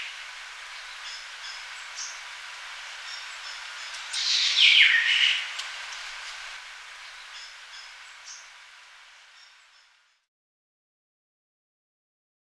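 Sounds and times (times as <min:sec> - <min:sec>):
Malia calling with scratchy descending squeals: 0:04.2 - 0:05.5.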